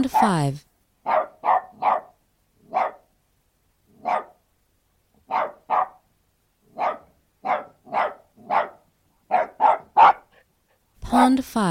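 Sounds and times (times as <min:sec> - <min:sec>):
speech: 0:00.0 - 0:01.2, 0:11.1 - 0:11.6
Australian terrier giving sharp barks: 0:01.0 - 0:03.1, 0:04.0 - 0:04.4, 0:05.3 - 0:06.0, 0:06.8 - 0:10.3.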